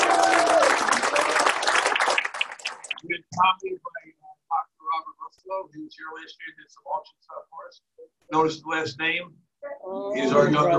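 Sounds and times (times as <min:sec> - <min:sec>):
audience applause at a convention gathering: 0:00.0 - 0:03.0
speech: 0:03.4 - 0:04.2, 0:05.5 - 0:10.7.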